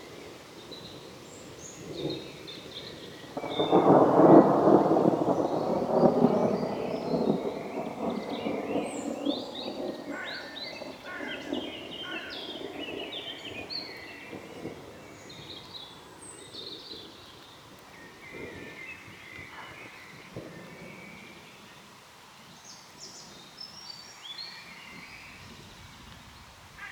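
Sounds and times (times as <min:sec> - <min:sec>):
songbirds chirping and twittering: 0:00.0 - 0:26.8.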